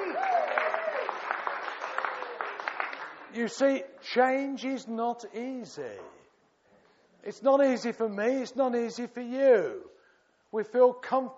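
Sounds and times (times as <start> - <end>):
audience clapping: 0.0 - 3.6
speech: 3.3 - 6.2, 7.2 - 9.9, 10.5 - 11.3.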